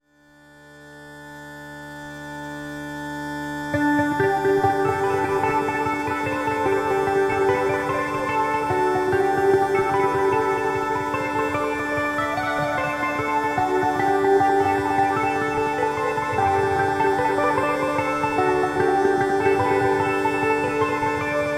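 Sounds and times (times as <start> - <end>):
Irish mandolin playing: 3.7 - 21.5.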